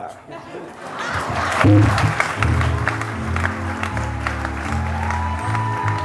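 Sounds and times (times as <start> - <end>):
laughter: 0.2 - 3.5
ceremonial music: 1.7 - 6.0.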